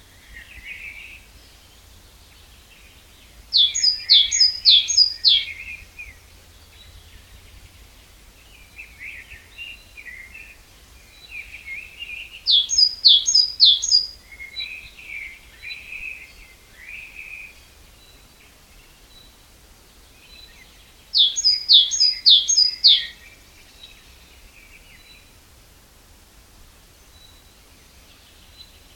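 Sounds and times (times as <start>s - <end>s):
great tit calls: 0.2s - 7.2s, 11.2s - 18.3s, 20.3s - 25.3s.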